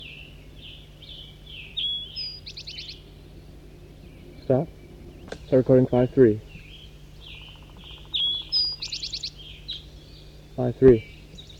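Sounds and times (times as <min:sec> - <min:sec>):
flock of crossbills calling: 0:00.0 - 0:11.5
speech: 0:04.5 - 0:04.8, 0:05.5 - 0:06.5, 0:10.6 - 0:11.1.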